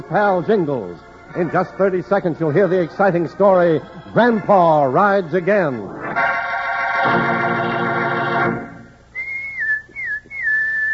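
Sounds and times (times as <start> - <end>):
speech: 0.0 - 6.0
loud sustained buzzy tone: 6.0 - 9.1
person whistling a bright sliding call: 9.1 - 10.9.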